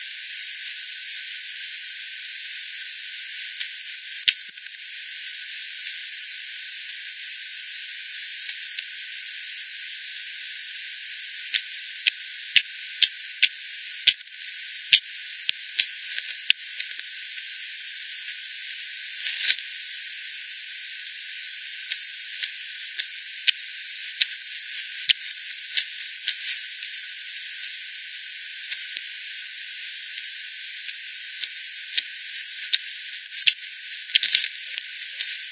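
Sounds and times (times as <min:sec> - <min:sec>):
steady hiss: 0:00.0 - 0:35.5
bat echolocation clicks: 0:03.6 - 0:04.8, 0:11.6 - 0:15.0.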